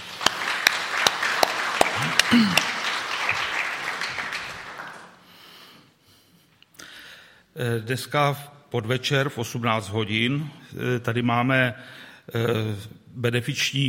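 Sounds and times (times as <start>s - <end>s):
crowd applauding: 0.0s - 5.2s
speech: 7.6s - 13.8s.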